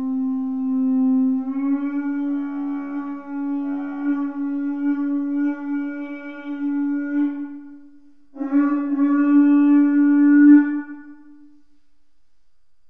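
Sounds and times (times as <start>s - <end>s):
medium horn: 0.0s - 11.6s.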